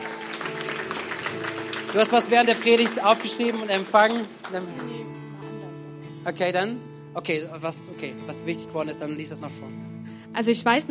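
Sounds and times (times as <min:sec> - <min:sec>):
audience applause: 0:00.0 - 0:05.1
speech: 0:02.0 - 0:05.2, 0:06.2 - 0:10.8.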